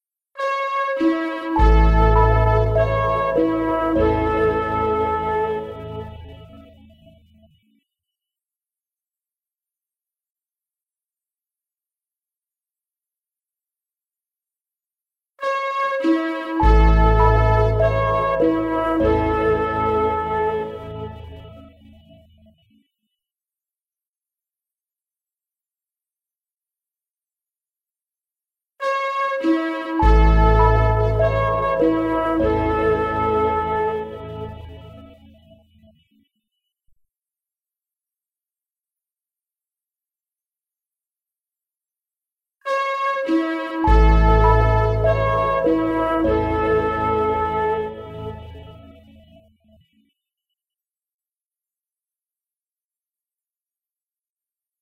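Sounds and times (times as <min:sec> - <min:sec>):
posthorn playing andante: 0:00.4 - 0:06.2, 0:15.4 - 0:21.5, 0:28.8 - 0:35.0, 0:42.7 - 0:48.8.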